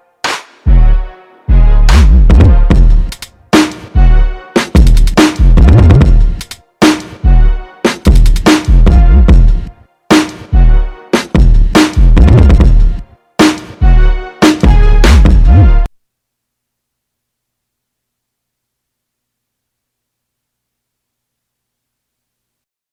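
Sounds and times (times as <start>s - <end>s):
instrumental music: 0.0s - 15.9s.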